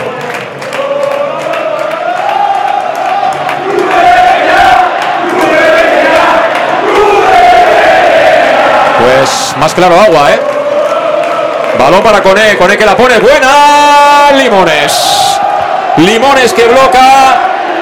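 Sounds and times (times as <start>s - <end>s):
stadium fans chanting: 0.0s - 12.2s, 14.1s - 17.7s
speech: 9.6s - 10.5s, 11.8s - 15.2s, 16.0s - 17.4s.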